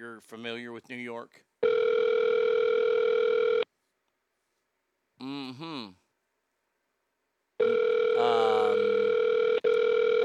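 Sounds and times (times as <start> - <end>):
speech: 0.2 - 1.9, 5.2 - 6.0
telephone ringing with no answer: 1.6 - 3.6, 7.6 - 10.2.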